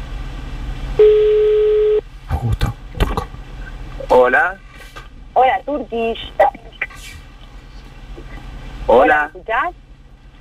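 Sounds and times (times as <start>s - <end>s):
telephone ringback tone: 1.0s - 2.0s
speech: 4.2s - 4.6s, 5.4s - 6.6s, 8.9s - 9.8s.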